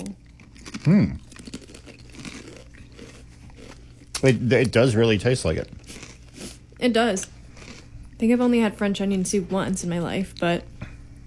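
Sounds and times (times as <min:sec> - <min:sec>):
biting into crunchy Lay's French onion potato chips: 0:00.0 - 0:07.9
speech: 0:00.8 - 0:01.2, 0:04.2 - 0:05.8, 0:06.8 - 0:07.3, 0:08.2 - 0:10.7.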